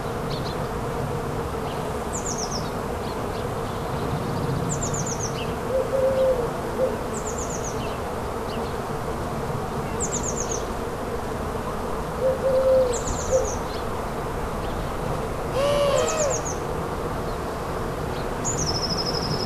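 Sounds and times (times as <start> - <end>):
bees droning: 0.0 - 19.4.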